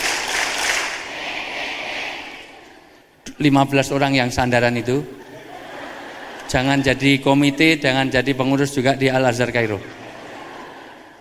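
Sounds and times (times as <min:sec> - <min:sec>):
group hand clapping in rhythm: 0:00.0 - 0:02.9
speech: 0:03.4 - 0:05.2, 0:06.5 - 0:10.0
laughter: 0:05.1 - 0:07.9, 0:09.4 - 0:11.1.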